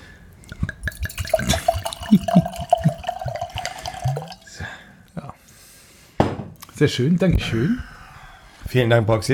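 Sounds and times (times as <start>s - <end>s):
red wine trickling and dripping into a glass: 0.5s - 4.6s
speech: 6.8s - 7.9s, 8.7s - 9.3s.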